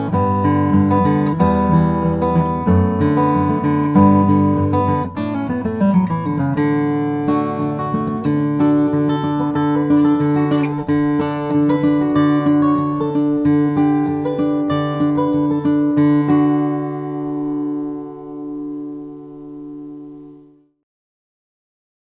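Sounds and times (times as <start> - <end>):
custom mahogany acoustic guitar: 0.0 - 20.7.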